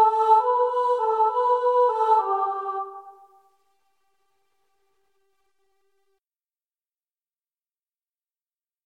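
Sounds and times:
soprano choir singing: 0:00.0 - 0:03.6.

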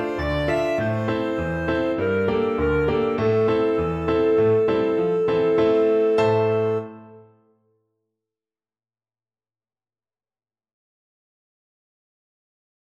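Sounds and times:
clarinet: 0:00.0 - 0:07.4.

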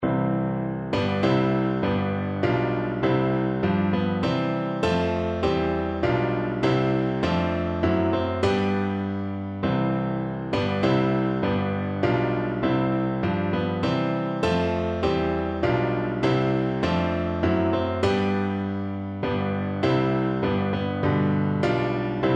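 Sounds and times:
piano: 0:00.0 - 0:22.3.

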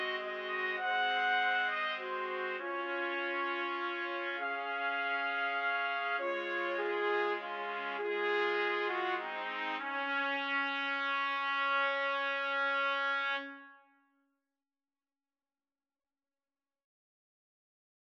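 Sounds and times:
trumpets playing: 0:00.0 - 0:13.8.

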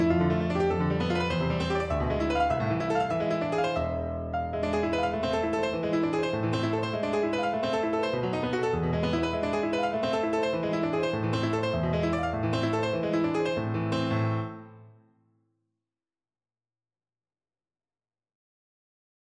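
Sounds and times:
piano piece: 0:00.0 - 0:15.1.

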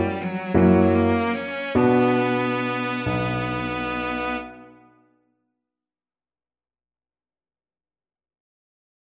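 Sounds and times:
violoncello: 0:00.0 - 0:04.9.

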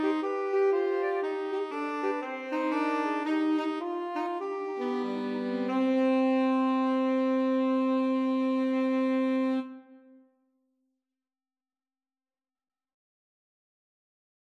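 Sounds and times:
baroque bourree played by two alto saxophones and tenor saxophone: 0:00.0 - 0:10.0.

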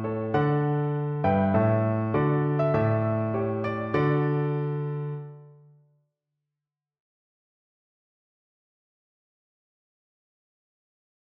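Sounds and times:
piano piece: 0:00.0 - 0:05.6.

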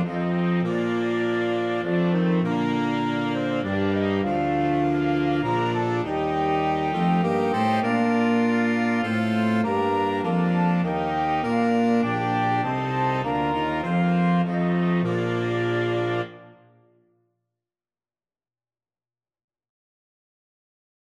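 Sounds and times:
flexible mixed ensemble of 4 players: 0:00.0 - 0:16.6.

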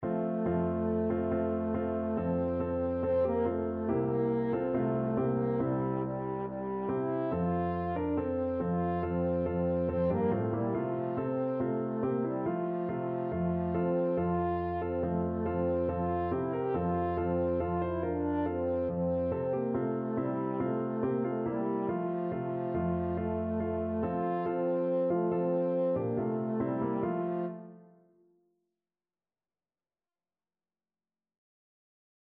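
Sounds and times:
French horn: 0:00.0 - 0:27.9.

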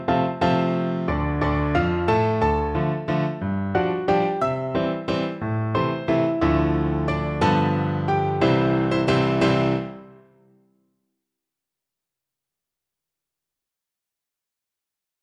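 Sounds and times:
piano duet: 0:00.0 - 0:10.5.

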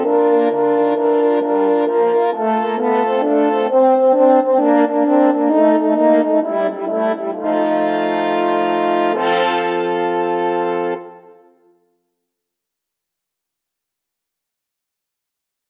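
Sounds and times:
French horn quartet playing a boogie: 0:00.0 - 0:11.6.

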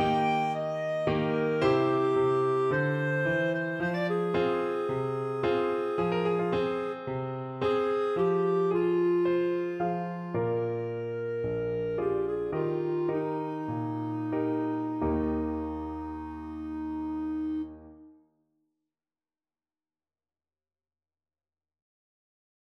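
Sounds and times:
clarinet playing fado: 0:00.0 - 0:18.1.

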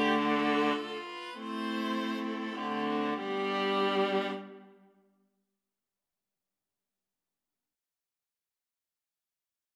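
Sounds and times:
viola ensemble playing a nocturne: 0:00.0 - 0:04.8.

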